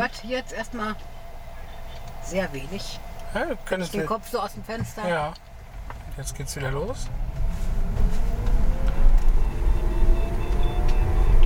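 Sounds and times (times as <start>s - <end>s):
speech: 0.0s - 1.2s, 2.3s - 7.2s
electric car humming while driving: 0.0s - 11.4s
road noise rumble: 0.0s - 11.4s.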